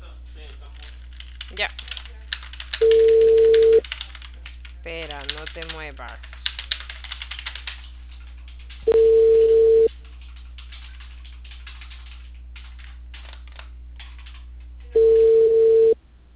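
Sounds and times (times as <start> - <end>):
speech: 1.5 - 1.9, 5.5 - 6.3
phone call ringing unanswered: 2.8 - 3.8, 8.9 - 9.9, 15.0 - 16.0.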